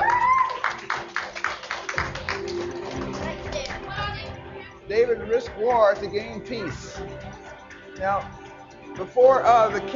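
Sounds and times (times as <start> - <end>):
round of applause: 0.0 - 3.9
speech: 4.9 - 7.4, 8.0 - 8.4, 9.0 - 9.9.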